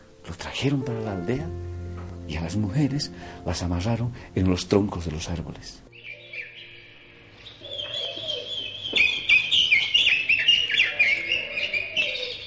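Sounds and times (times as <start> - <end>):
speech: 0.6 - 1.7, 2.3 - 5.9
woodpecker-like bird calling: 7.6 - 12.4.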